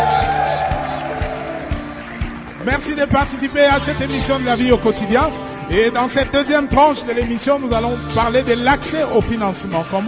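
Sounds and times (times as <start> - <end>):
large crowd cheering and applauding: 0.0 - 6.0
speech: 2.6 - 10.0.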